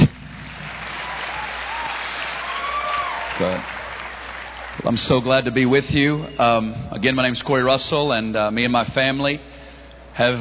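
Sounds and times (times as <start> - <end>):
audience clapping: 0.0 - 5.5
speech: 3.4 - 3.8, 4.8 - 9.5, 10.2 - 10.3.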